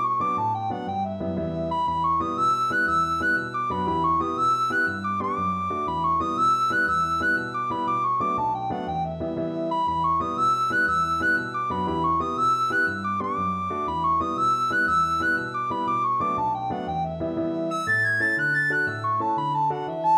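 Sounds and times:
recorder playing a medley of Irish jigs: 0.0 - 20.1.

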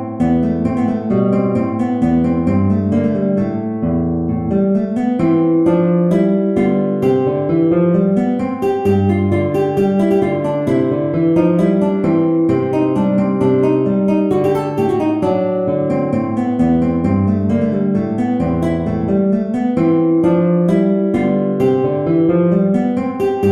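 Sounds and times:
guitar playing a freylachs in A minor: 0.0 - 23.5.

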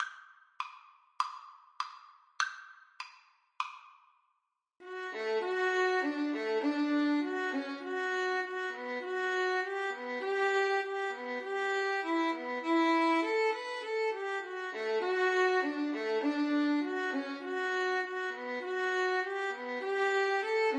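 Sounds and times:
violin duet: 4.8 - 20.7.

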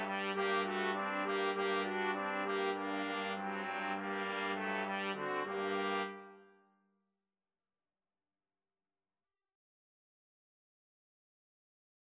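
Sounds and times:
flexible mixed ensemble of 3 players playing: 0.0 - 6.4.

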